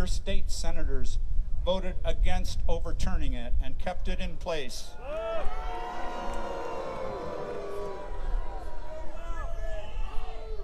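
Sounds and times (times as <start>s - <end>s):
speech: 0.0s - 5.8s
large crowd booing: 4.9s - 10.6s.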